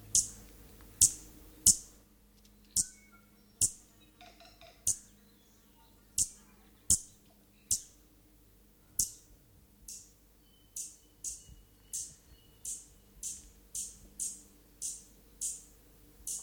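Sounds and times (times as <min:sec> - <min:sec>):
New Zealand stitchbird calls of sharp explosive high clicks and whistles: 0:00.1 - 0:00.4, 0:01.0 - 0:01.9, 0:02.7 - 0:03.0, 0:03.6 - 0:05.1, 0:06.2 - 0:07.9, 0:09.0 - 0:09.3, 0:10.8 - 0:16.4.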